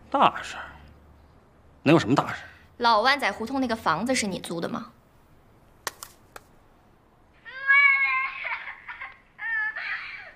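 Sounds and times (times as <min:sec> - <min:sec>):
speech: 0:00.1 - 0:00.7, 0:01.8 - 0:05.0
child crying in a rented room: 0:07.4 - 0:10.3.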